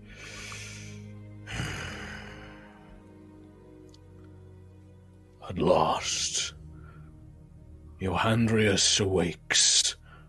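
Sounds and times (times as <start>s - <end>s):
deep laboured breath from a dragon waking from a nightmare: 0.0s - 3.2s, 6.6s - 7.4s, 10.0s - 10.2s
speech: 5.5s - 6.5s, 8.0s - 9.7s.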